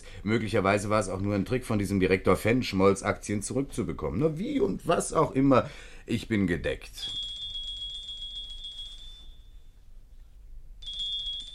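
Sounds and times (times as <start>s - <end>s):
speech: 0.2s - 7.2s
doorbell ringing: 7.1s - 9.8s, 10.8s - 11.5s.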